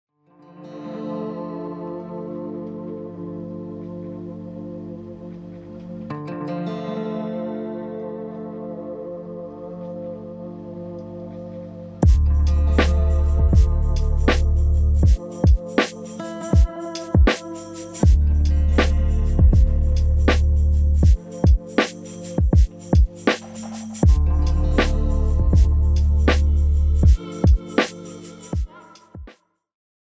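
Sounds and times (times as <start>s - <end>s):
music beat: 12.0s - 29.4s.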